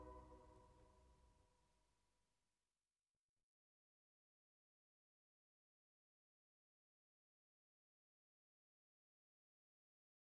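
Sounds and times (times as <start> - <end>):
chorale: 0.0 - 0.6.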